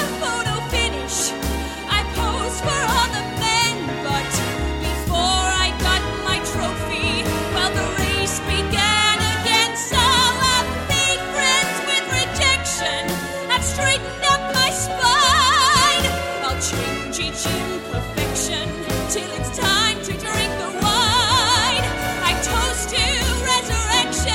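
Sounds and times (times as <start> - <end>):
women with northern English accents singing: 0.0 - 24.3.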